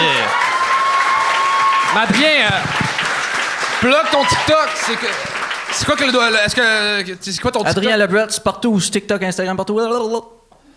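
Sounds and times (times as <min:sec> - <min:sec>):
audience applause: 0:00.0 - 0:07.0
speech: 0:02.0 - 0:02.8, 0:03.8 - 0:10.4.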